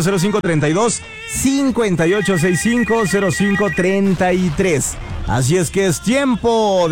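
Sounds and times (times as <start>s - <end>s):
speech: 0.0s - 6.9s
telephone ringing on a radio call-in line: 2.0s - 4.1s.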